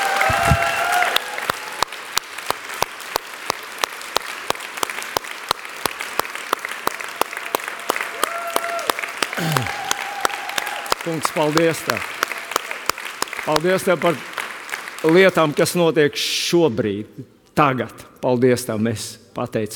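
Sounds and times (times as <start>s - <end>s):
audience clapping in a steady rhythm: 0.0s - 15.8s
speech: 0.4s - 0.7s, 11.1s - 12.2s, 13.5s - 14.3s, 15.0s - 19.7s.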